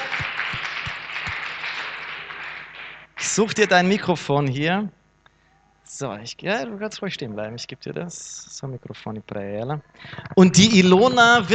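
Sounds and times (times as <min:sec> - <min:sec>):
audience applause: 0:00.0 - 0:03.5
speech: 0:03.2 - 0:05.0, 0:06.0 - 0:11.5.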